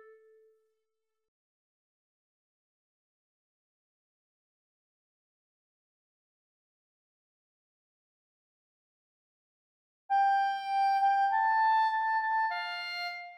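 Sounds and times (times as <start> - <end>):
clarinet: 10.1 - 13.3.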